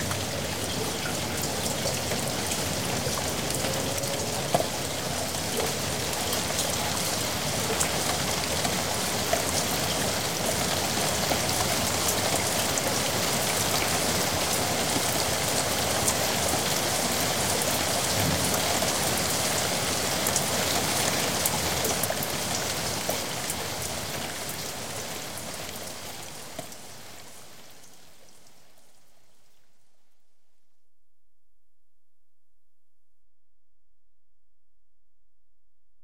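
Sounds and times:
water running into a gully: 0.0s - 27.2s
heavy rain in a yard: 0.0s - 29.4s.

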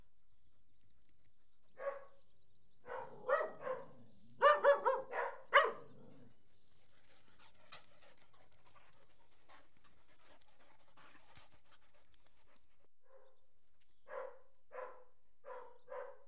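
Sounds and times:
dog barking: 1.8s - 2.2s, 2.8s - 5.9s, 14.1s - 16.2s.

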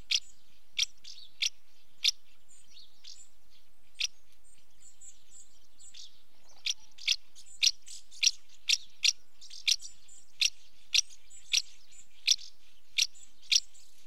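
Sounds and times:
female house martin calling at the nest entrance: 0.0s - 14.0s.

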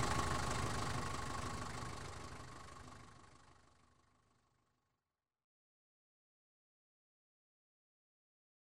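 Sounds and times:
taxi engine ticking over outside: 0.0s - 4.2s.

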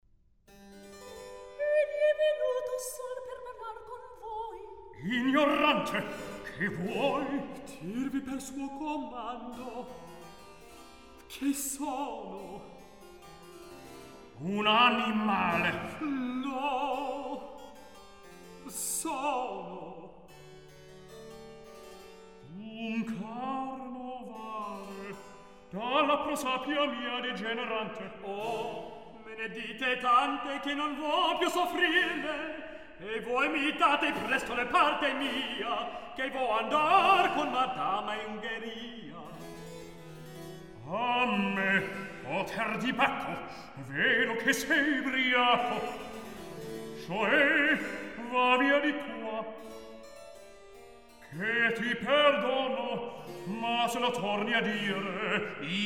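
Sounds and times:
recitative singing: 1.6s - 10.2s, 11.2s - 12.8s, 14.3s - 17.7s, 18.6s - 20.3s, 22.4s - 39.6s, 40.8s - 49.7s, 51.3s - 55.8s.

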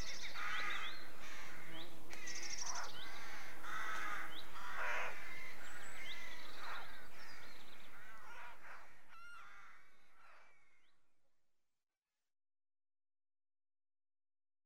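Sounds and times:
many rooks cawing at a British rookery: 0.0s - 11.0s.

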